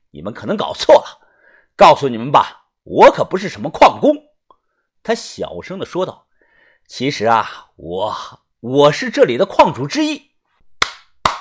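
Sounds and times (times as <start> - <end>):
speech: 0.1 - 1.2, 1.8 - 4.3, 5.0 - 6.2, 6.9 - 10.3
hands clapping: 10.8 - 11.3.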